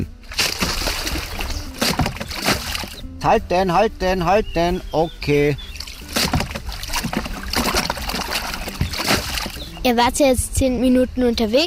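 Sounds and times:
water sloshing and splashing as a homemade raft is launched: 0.0s - 3.1s, 5.6s - 9.9s
speech: 3.2s - 5.7s, 9.8s - 11.6s.

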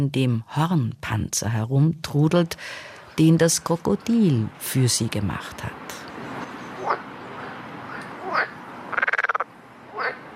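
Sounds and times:
speech: 0.0s - 6.0s
outdoor noise: 0.0s - 10.3s
frog croaking: 5.8s - 10.3s.

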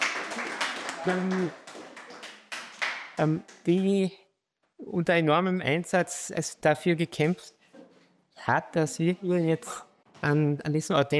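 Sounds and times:
audience applause: 0.0s - 3.2s
speech: 1.0s - 1.6s, 3.2s - 4.2s, 4.8s - 7.6s, 8.4s - 11.1s.

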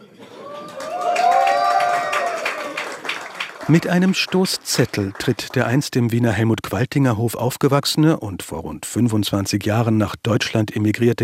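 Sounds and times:
crowd cheering: 0.0s - 5.8s
scattered hand claps: 0.5s - 6.0s
speech: 3.7s - 11.2s.

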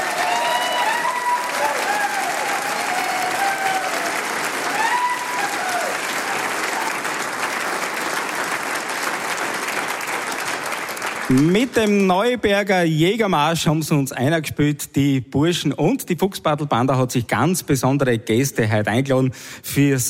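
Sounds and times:
audience applause in a hall: 0.0s - 12.1s
speech: 11.4s - 20.0s.

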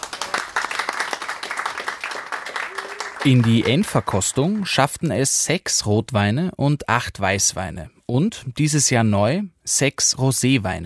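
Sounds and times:
audience applause for competition winners: 0.0s - 4.8s
speech: 3.2s - 10.8s.

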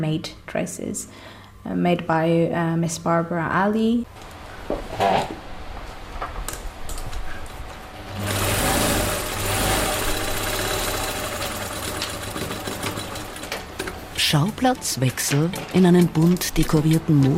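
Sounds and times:
speech: 0.0s - 5.4s, 14.3s - 17.3s
sewing machine running: 8.0s - 14.0s.

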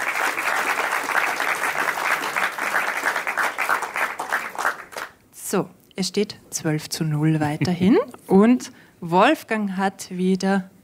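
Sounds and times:
audience applause: 0.0s - 5.1s
speech: 5.5s - 10.7s.

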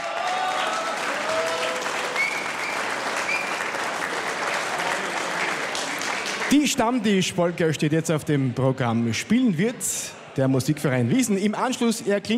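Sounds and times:
audience applause: 0.0s - 7.3s
speech: 6.5s - 12.3s.

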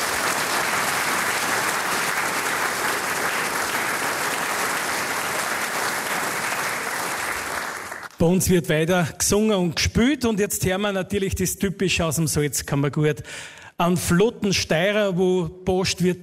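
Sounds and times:
audience applause: 0.0s - 8.2s
speech: 8.2s - 16.2s.

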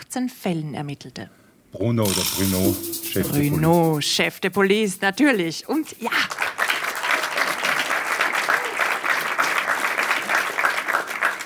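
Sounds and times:
speech: 0.1s - 6.4s
audience applause: 6.2s - 11.4s.

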